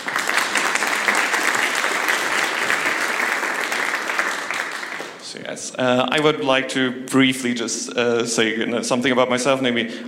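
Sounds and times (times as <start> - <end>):
audience applause: 0.0 - 5.2
speech: 5.3 - 10.0.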